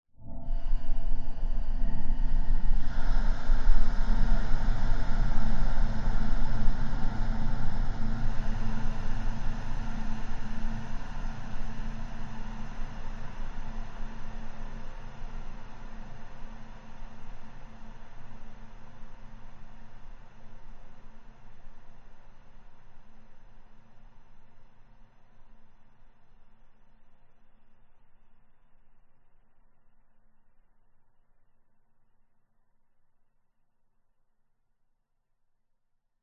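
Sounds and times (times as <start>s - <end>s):
dark ghostly horror drone atmosphere: 0.2s - 21.7s
ghostly female breaths: 0.3s - 14.0s.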